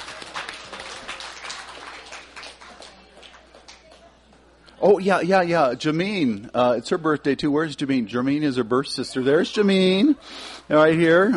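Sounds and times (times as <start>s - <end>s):
birthday applause from audience: 0.0s - 4.0s
speech: 4.8s - 11.3s.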